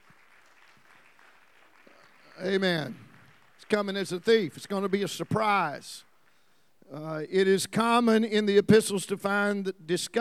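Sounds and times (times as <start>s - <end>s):
audience hand clap: 0.0s - 6.5s
speech: 2.4s - 3.0s, 3.6s - 6.1s, 6.9s - 10.1s.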